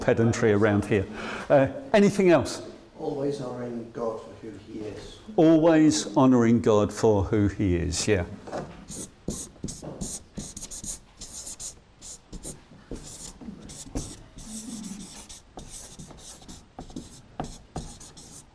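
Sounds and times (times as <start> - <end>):
speech: 0.0 - 9.1
pen scratching on paper while handwriting: 8.9 - 18.5.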